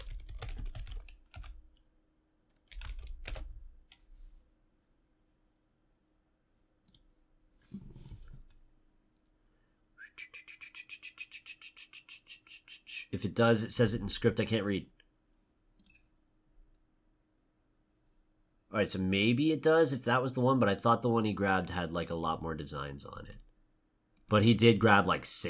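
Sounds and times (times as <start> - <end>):
computer keyboard typing: 0.0 - 1.8, 2.5 - 4.0
speech: 13.1 - 15.0, 18.8 - 23.5, 24.3 - 25.4.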